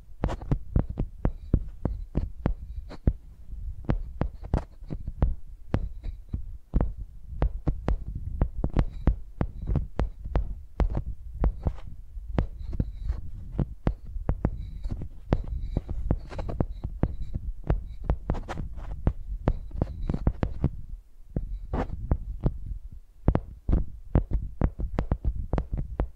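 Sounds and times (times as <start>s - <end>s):
microphones used as pencils: 0.0s - 26.1s.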